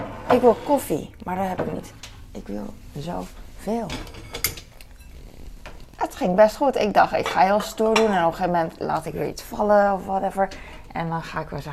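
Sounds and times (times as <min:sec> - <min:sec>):
low steady hum: 0:00.0 - 0:11.7
speech: 0:00.3 - 0:04.3, 0:06.2 - 0:11.7
glasses clinking as they are cleared away: 0:04.0 - 0:05.2.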